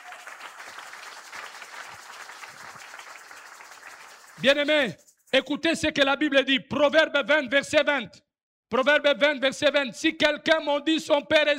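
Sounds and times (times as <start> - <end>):
congregation applauding during a sermon: 0.0 - 5.0
speech: 4.4 - 11.5.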